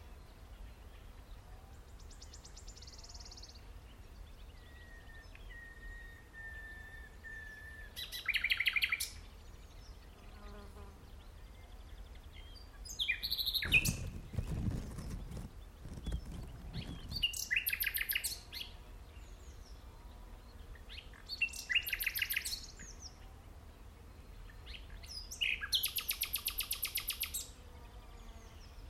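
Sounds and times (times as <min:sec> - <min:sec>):
common nightingale singing: 0:04.3 - 0:09.2, 0:11.4 - 0:19.7, 0:20.7 - 0:23.2, 0:24.4 - 0:27.5
rustling: 0:13.5 - 0:17.4
low thumping: 0:13.6 - 0:17.3.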